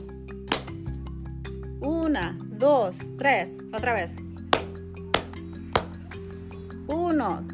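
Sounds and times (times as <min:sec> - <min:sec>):
hand claps: 0:00.5 - 0:00.9, 0:04.5 - 0:06.0
speech: 0:01.8 - 0:04.3, 0:06.9 - 0:07.5.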